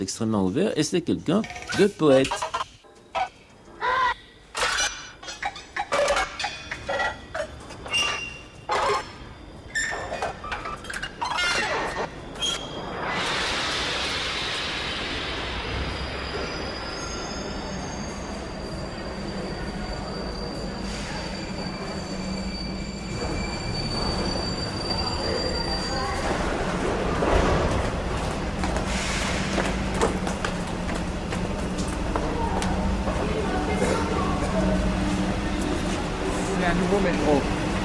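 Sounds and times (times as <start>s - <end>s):
speech: 0.0s - 2.6s
metro train wheel squeal: 4.6s - 13.7s, 15.7s - 26.6s
new model metro train rumbling along the rails: 12.0s - 37.8s.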